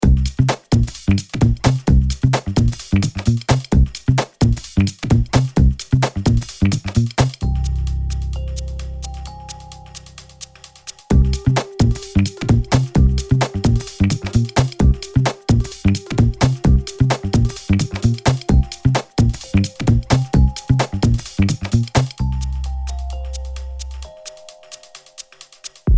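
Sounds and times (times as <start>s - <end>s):
funky background music: 0.0s - 25.8s.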